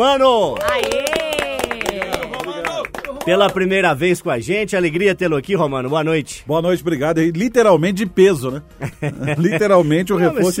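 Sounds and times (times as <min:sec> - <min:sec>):
speech: 0:00.0 - 0:01.1, 0:03.2 - 0:10.5
round of applause: 0:00.2 - 0:03.8
laughter: 0:08.8 - 0:10.0.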